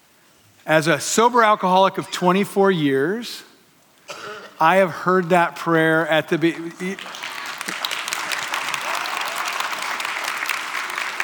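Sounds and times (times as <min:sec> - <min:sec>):
speech: 0:00.7 - 0:03.5, 0:04.6 - 0:07.2
audience applause: 0:06.6 - 0:11.2.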